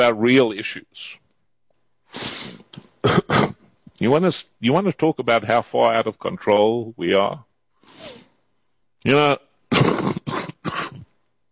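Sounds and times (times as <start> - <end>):
speech: 0.0 - 1.2, 2.1 - 8.2, 9.0 - 9.5
man with a lingering cold hacking cough: 3.0 - 3.6, 9.7 - 11.1.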